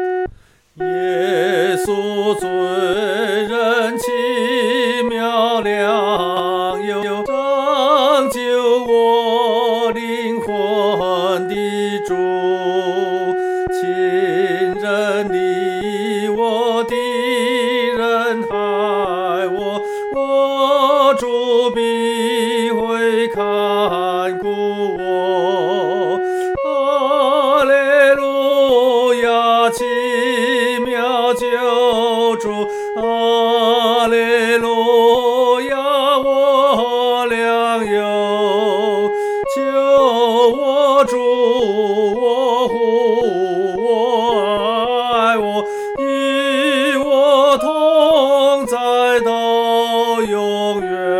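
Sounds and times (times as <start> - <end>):
solo singing: 0.1 - 51.1.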